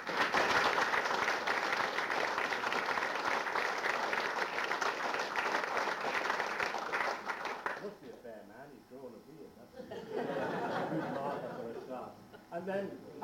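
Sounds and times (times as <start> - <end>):
audience applause: 0.0 - 7.9
laughter: 9.7 - 12.5.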